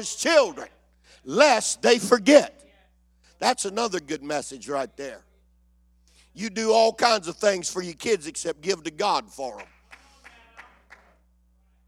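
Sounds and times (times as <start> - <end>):
speech: 0.0 - 2.6, 3.4 - 5.3, 6.4 - 9.7
hand clapping: 9.5 - 11.2.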